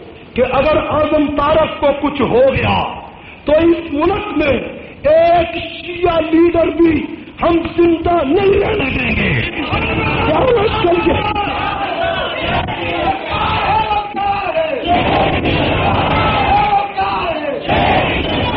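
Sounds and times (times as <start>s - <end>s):
speech: 0.4s - 11.6s
crowd chanting slogans: 11.0s - 13.9s, 14.8s - 18.5s.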